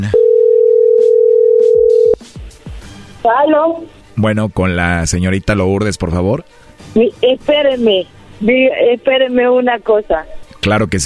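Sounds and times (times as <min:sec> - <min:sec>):
telephone call ringing on the line: 0:00.1 - 0:02.2
speech: 0:03.2 - 0:11.0.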